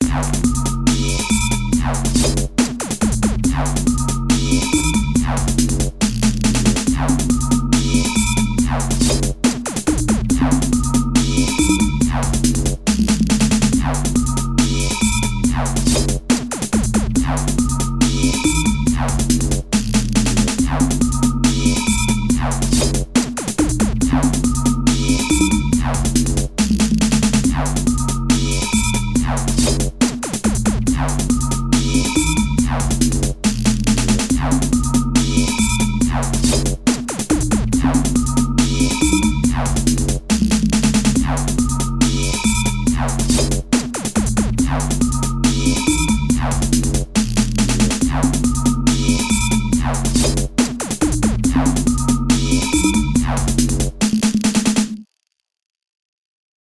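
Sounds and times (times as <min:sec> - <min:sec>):
complex beat: 0:00.0 - 0:55.0.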